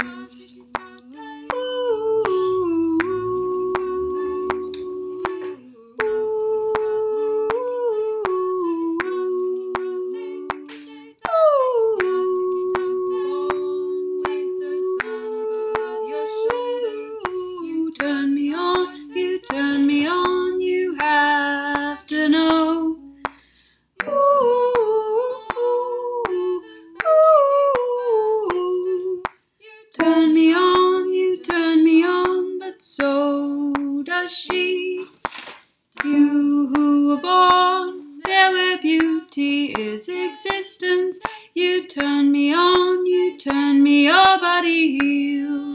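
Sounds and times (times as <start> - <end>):
Greek song sung by sopranos: 0.0 - 35.2, 36.0 - 45.7.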